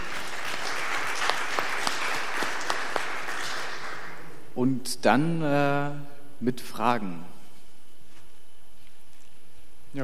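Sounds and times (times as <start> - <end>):
audience applause: 0.0 - 4.4
speech: 4.6 - 7.3.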